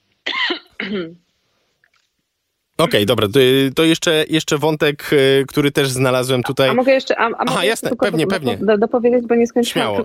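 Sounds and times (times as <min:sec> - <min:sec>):
person coughing: 0:00.3 - 0:01.2
speech: 0:00.8 - 0:01.3, 0:02.8 - 0:10.0.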